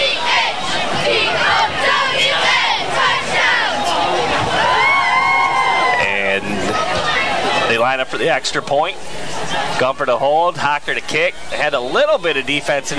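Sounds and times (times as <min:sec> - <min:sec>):
cheerleaders doing a touchdown cheer: 0:00.0 - 0:10.3
speech: 0:07.8 - 0:12.9.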